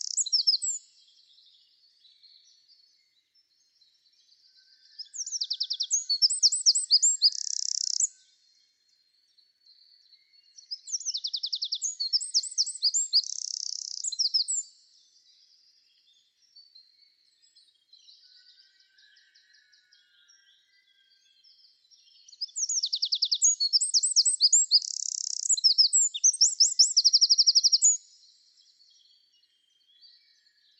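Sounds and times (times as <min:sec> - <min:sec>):
Eurasian wren singing: 0:00.0 - 0:00.9, 0:05.0 - 0:08.2, 0:10.6 - 0:14.7, 0:22.1 - 0:28.3.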